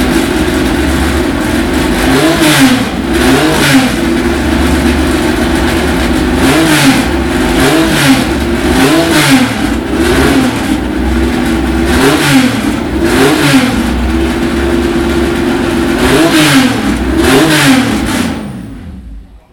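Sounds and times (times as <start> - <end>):
Porsche 911 RSR: 0.0 - 19.5.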